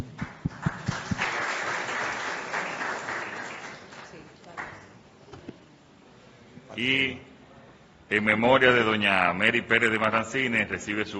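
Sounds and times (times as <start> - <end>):
audience applause: 0.0 - 4.8
speech: 6.8 - 7.3, 8.1 - 11.1.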